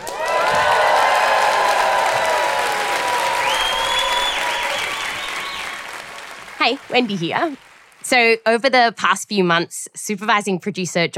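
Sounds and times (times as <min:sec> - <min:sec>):
audience applause: 0:00.0 - 0:08.1
speech: 0:06.6 - 0:11.1.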